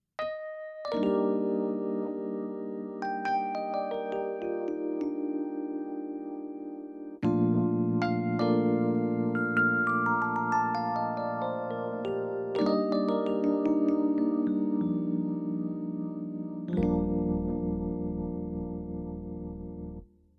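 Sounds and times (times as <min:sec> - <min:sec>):
tremolo electric piano: 0:00.2 - 0:20.3.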